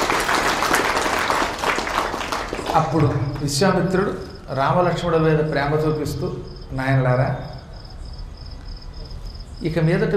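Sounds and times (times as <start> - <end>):
audience applause: 0.0 - 3.5
speech: 2.8 - 7.5, 9.6 - 10.1.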